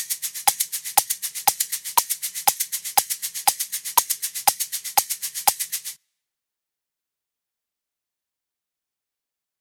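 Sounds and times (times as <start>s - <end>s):
shakers playing sixteenth notes with accents: 0.0s - 6.0s.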